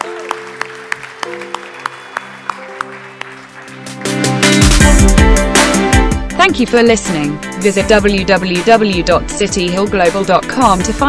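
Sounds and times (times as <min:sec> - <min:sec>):
audience applause: 0:00.0 - 0:04.9
sustained keyboard chords: 0:00.0 - 0:11.0
steady beat: 0:04.0 - 0:11.0
speech: 0:06.6 - 0:11.0.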